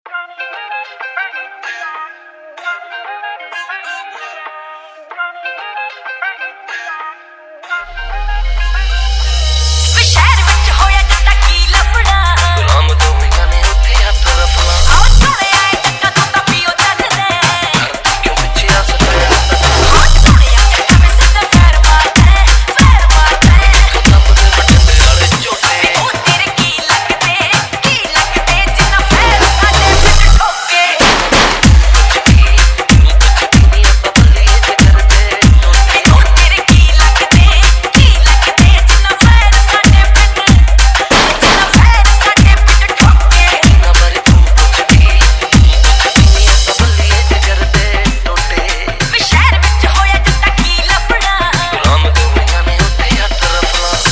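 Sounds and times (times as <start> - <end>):
dhol remix song: 0.2 - 54.1.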